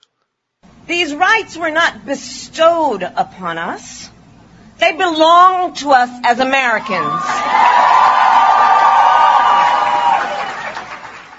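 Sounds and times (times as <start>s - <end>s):
speech: 0.9s - 4.1s, 4.8s - 8.1s
crowd cheering: 6.8s - 11.3s.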